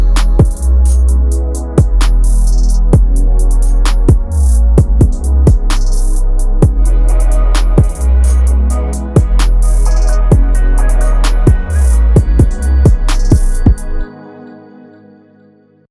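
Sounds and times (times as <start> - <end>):
RnB beat in G minor at 130 BPM: 0.0 - 14.0.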